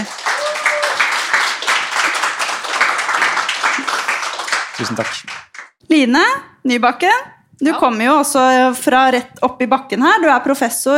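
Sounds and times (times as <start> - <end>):
audience applause: 0.0 - 5.7
speech: 4.8 - 10.9.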